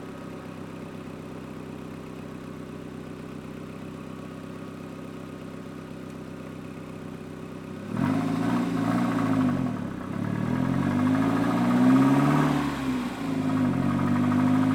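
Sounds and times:
Toyota endurance race car with Audi engine driving, stopping and reversing: 7.8 - 14.7.

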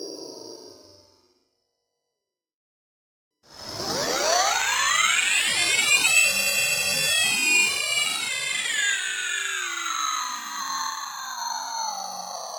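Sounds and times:
digital scream power on: 3.8 - 12.0.

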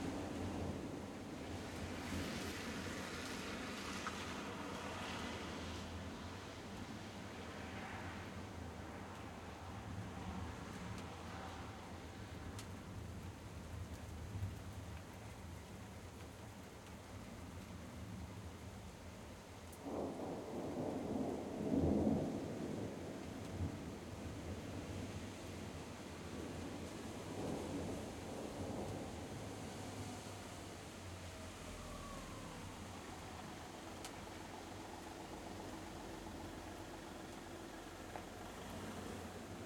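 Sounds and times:
vehicles passing on wet floor: 0.0 - 14.2, 21.8 - 39.6
light rain: 0.0 - 39.6
thunder rumbles: 19.8 - 39.6.

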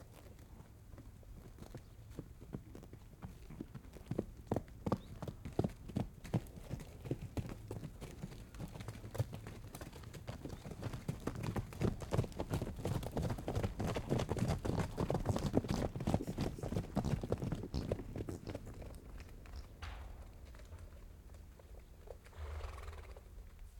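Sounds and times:
ranch horse trotting in a pasture: 0.1 - 23.6
ranch horse snorting in a pasture: 22.3 - 23.3.

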